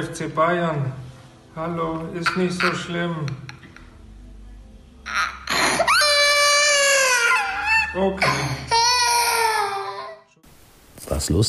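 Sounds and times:
speech: 0:00.0 - 0:01.0, 0:01.6 - 0:03.5, 0:07.9 - 0:08.8, 0:11.1 - 0:11.4
child crying: 0:05.1 - 0:10.3.

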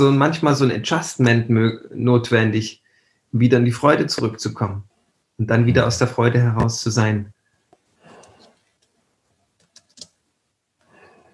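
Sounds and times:
speech: 0:00.0 - 0:07.4
quiet breathing: 0:02.8 - 0:03.4, 0:07.4 - 0:08.9, 0:10.8 - 0:11.3
typing on a computer keyboard: 0:09.6 - 0:10.2.

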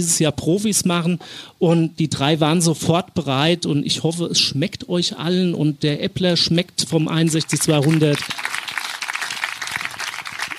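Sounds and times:
speech: 0:00.0 - 0:08.6
audience applause: 0:07.3 - 0:10.5.

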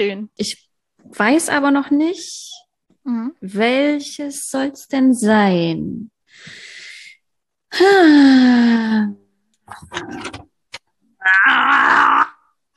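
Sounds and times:
speech: 0:00.0 - 0:06.6, 0:07.7 - 0:10.5
person straining and groaning while opening a pickle jar: 0:11.1 - 0:12.7
person moaning: 0:11.2 - 0:12.7.

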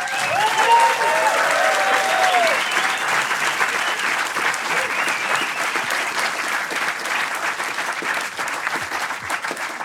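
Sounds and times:
audience applause: 0:00.0 - 0:09.8.

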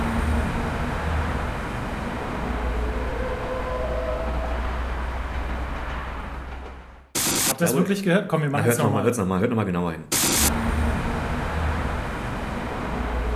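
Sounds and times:
distant truck braking: 0:00.0 - 0:07.2, 0:10.3 - 0:13.3
speech: 0:07.6 - 0:10.2.

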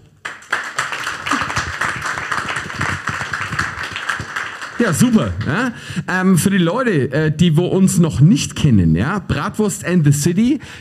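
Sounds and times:
live audience applause: 0:00.1 - 0:05.8
speech: 0:04.8 - 0:10.7.

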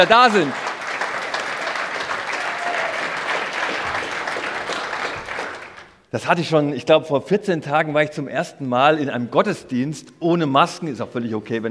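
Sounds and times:
speech: 0:00.0 - 0:00.6, 0:06.1 - 0:11.7
audience applause: 0:00.0 - 0:06.0.

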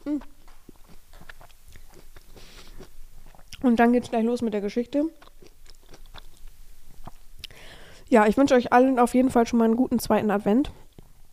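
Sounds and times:
chewing two pieces of food at once: 0:00.0 - 0:03.7, 0:05.2 - 0:07.6, 0:10.8 - 0:11.2
speech: 0:00.1 - 0:00.4, 0:03.6 - 0:05.3, 0:08.1 - 0:10.8.

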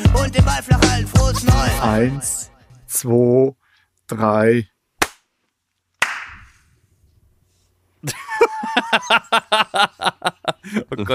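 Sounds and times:
speech: 0:00.3 - 0:04.7, 0:08.0 - 0:11.1
hand clapping: 0:06.0 - 0:06.5
laughter: 0:08.0 - 0:11.1.

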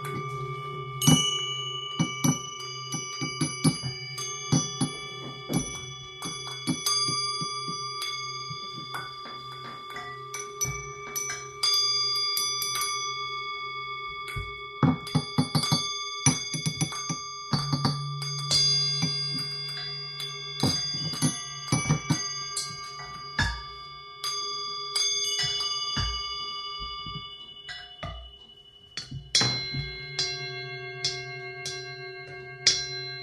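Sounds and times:
large singing bowl ringing: 0:00.0 - 0:33.2.

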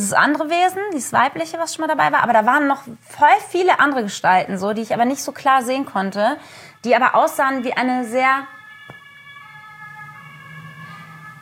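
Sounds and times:
speech: 0:00.0 - 0:08.6
siren: 0:06.4 - 0:11.4.

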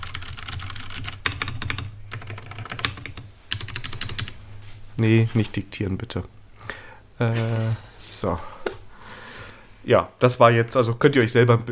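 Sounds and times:
typing on a computer keyboard: 0:00.0 - 0:04.3
speech: 0:05.0 - 0:06.4, 0:07.2 - 0:08.5, 0:09.8 - 0:11.7.

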